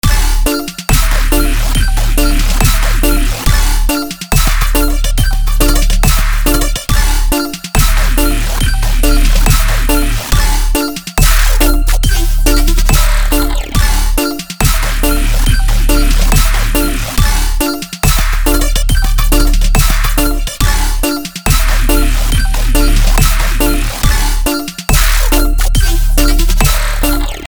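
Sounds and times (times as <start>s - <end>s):
dubstep music: 0.0s - 27.4s.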